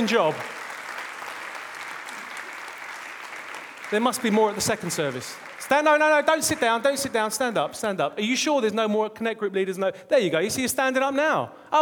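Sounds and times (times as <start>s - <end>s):
speech: 0.0s - 0.6s, 3.9s - 11.8s
crowd applauding: 0.0s - 7.1s.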